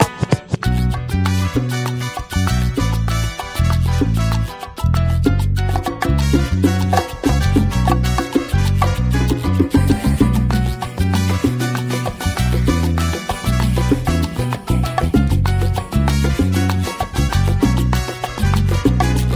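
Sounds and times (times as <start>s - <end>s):
latin music: 0.0s - 19.3s.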